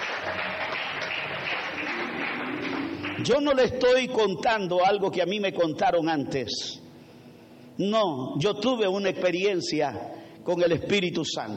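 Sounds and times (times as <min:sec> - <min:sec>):
audience clapping: 0:00.0 - 0:03.6
speech: 0:03.2 - 0:06.8, 0:07.8 - 0:11.5.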